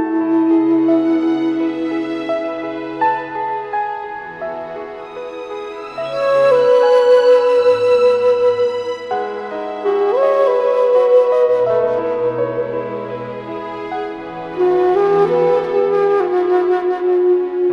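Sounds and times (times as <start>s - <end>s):
Anasazi end-blown flute in E: 0.0s - 3.4s, 6.0s - 13.5s, 14.5s - 17.7s.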